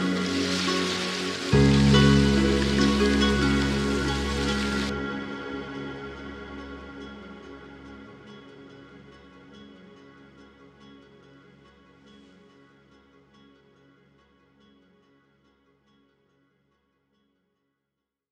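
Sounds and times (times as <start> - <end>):
Irish Celtic music: 0.0 - 10.8
nature ambience: 0.0 - 13.4.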